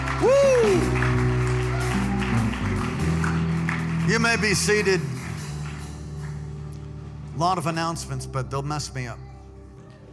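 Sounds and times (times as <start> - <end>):
crowd clapping: 0.0 - 6.9
music with a deep bass line and held chords: 0.0 - 7.5
speech: 4.2 - 5.1, 7.4 - 9.2.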